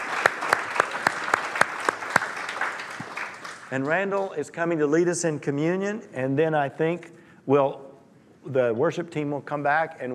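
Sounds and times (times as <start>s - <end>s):
audience applause: 0.0s - 4.0s
speech: 3.7s - 10.1s.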